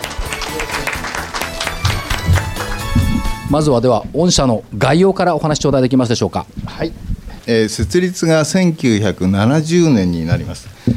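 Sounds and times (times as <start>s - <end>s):
audience applause: 0.0s - 3.4s
speech: 3.5s - 10.9s.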